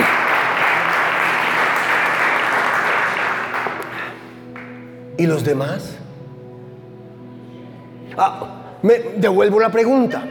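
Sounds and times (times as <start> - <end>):
audience applause: 0.0 - 4.8
speech: 5.2 - 6.0, 8.2 - 10.2.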